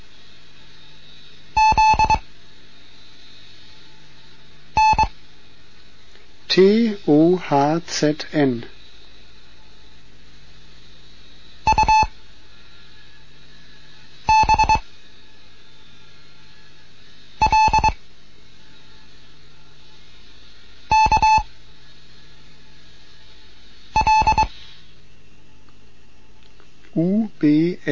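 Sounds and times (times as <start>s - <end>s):
steady hiss: 0.0s - 27.9s
Morse code beeps: 1.6s - 2.2s, 4.8s - 5.1s, 11.7s - 12.1s, 14.3s - 14.8s, 17.4s - 18.0s, 20.9s - 21.4s, 24.0s - 24.5s
speech: 6.6s - 8.7s.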